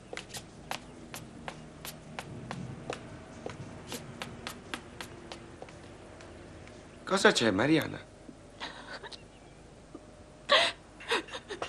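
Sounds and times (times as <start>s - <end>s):
speech: 7.1s - 8.1s
distressed young woman sobbing: 10.4s - 11.6s.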